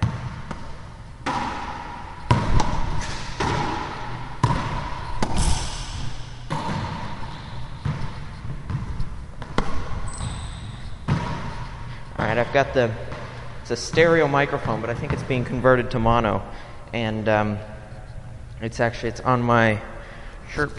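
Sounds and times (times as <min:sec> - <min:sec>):
ball striking objects: 0:00.0 - 0:15.7
speech: 0:12.4 - 0:13.1, 0:13.7 - 0:17.7, 0:18.6 - 0:19.9, 0:20.5 - 0:20.7.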